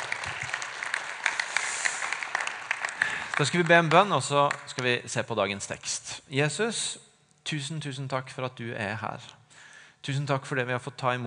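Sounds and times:
crowd applauding: 0.0s - 4.8s
speech: 3.4s - 9.4s, 10.0s - 11.2s.

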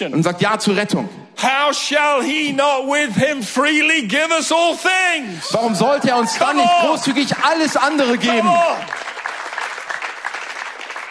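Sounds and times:
speech: 0.0s - 9.2s
church audience applauding: 5.7s - 11.0s.

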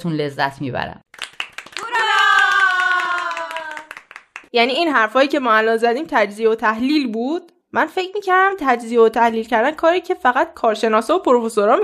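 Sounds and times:
speech: 0.0s - 1.0s, 4.5s - 11.8s
group applause: 1.1s - 4.6s
long held tonal cheer-like voice: 1.7s - 4.1s.

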